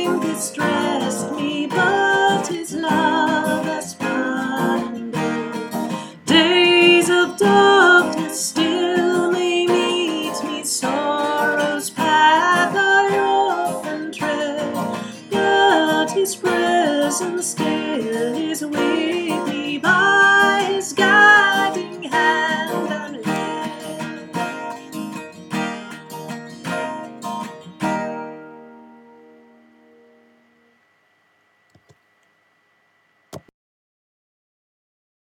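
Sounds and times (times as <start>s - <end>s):
alto voice singing a hymn: 0.0s - 24.2s.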